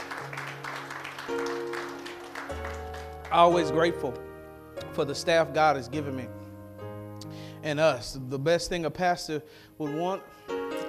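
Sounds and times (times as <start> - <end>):
audience clapping hands: 0.0 - 4.0
speech: 3.3 - 4.3, 5.0 - 6.4, 7.6 - 10.6.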